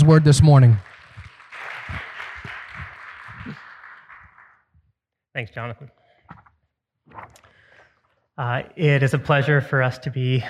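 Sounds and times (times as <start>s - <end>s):
speech: 0.0s - 0.9s, 5.4s - 6.4s, 8.4s - 10.4s
audience giving a warm hand clap: 0.0s - 4.7s.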